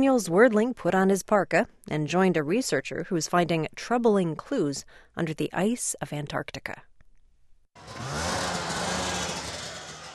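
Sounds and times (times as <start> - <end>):
speech: 0.0 - 6.9
snowmobile engines idling: 7.8 - 10.1.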